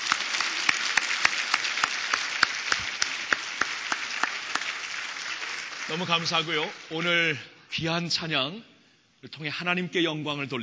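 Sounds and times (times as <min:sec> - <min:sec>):
audience applause: 0:00.0 - 0:07.4
speech: 0:05.9 - 0:10.6.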